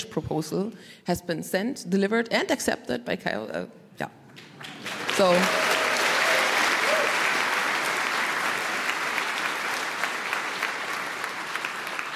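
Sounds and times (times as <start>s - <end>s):
speech: 0.2s - 4.5s, 5.2s - 5.7s
audience applauding: 4.4s - 12.1s.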